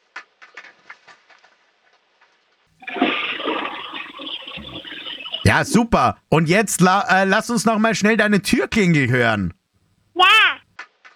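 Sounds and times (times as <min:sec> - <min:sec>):
household toilet flushing: 0:02.8 - 0:06.2
speech: 0:05.5 - 0:09.6.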